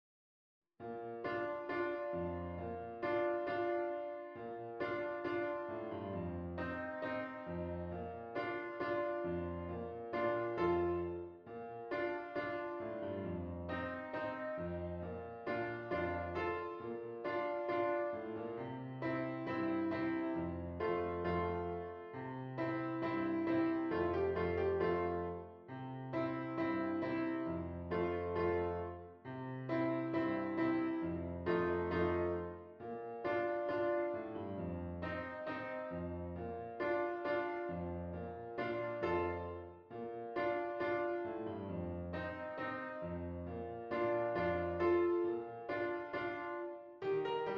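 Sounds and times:
piano: 0.8s - 47.5s.

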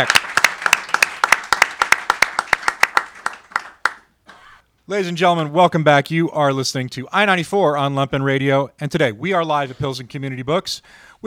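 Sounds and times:
speech: 0.0s - 0.2s, 4.9s - 11.2s
audience clapping welcoming an author at Pilsen Community Books: 0.0s - 4.1s.

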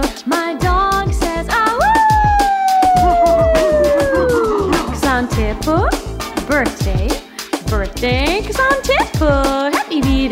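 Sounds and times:
steady thumping music beat: 0.0s - 10.2s
dog howling: 1.8s - 4.8s
speech: 6.5s - 7.2s.

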